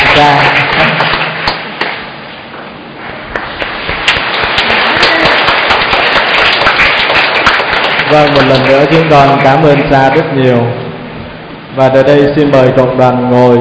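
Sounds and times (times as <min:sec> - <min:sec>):
church congregation applauding their parish priest: 0:00.0 - 0:02.1, 0:03.3 - 0:10.6
speech: 0:00.2 - 0:00.6, 0:08.1 - 0:10.8, 0:11.8 - 0:13.6.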